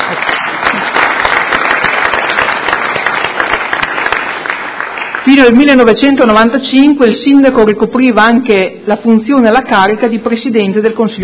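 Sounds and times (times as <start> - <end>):
audience clapping: 0.0 - 5.8
speech: 5.3 - 11.2.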